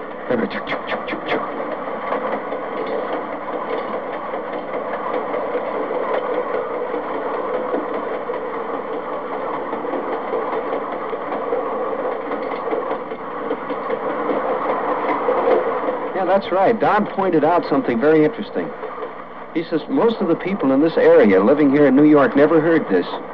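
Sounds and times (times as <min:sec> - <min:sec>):
freight train passing a grade crossing: 0:00.0 - 0:23.3
speech: 0:00.3 - 0:01.1, 0:16.4 - 0:18.8, 0:19.6 - 0:23.2.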